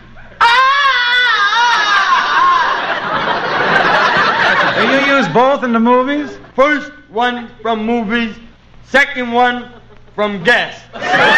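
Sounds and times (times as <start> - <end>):
jungle yell, long loud sustained vocal cry: 0.3 - 3.0
laughter: 1.3 - 6.6, 10.9 - 11.3
speech: 5.3 - 11.3.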